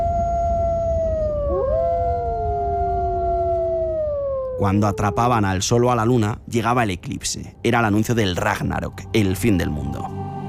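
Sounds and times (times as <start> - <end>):
wolves howling: 0.0 - 5.8
speech: 4.6 - 10.2.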